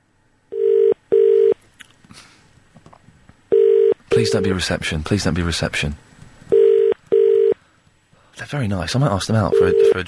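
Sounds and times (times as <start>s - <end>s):
telephone ringback from a hotel room call to reception: 0.5s - 1.6s, 3.5s - 4.5s, 6.5s - 7.6s, 9.5s - 10.0s
speech: 4.2s - 6.1s, 8.5s - 10.0s.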